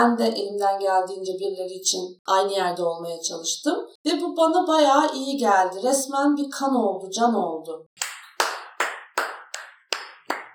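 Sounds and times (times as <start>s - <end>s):
speech: 0.0s - 8.0s
hand clapping: 8.0s - 10.5s.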